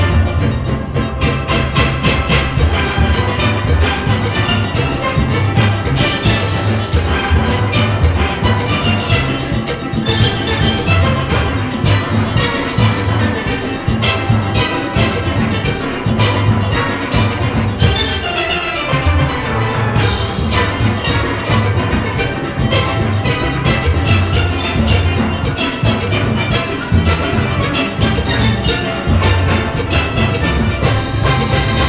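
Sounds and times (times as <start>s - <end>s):
rain melody: 0.0s - 31.8s.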